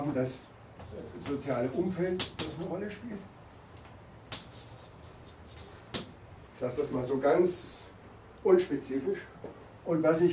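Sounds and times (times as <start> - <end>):
speech: 0.2 - 3.4, 6.6 - 10.3
writing on a board: 0.8 - 2.7, 3.8 - 6.1.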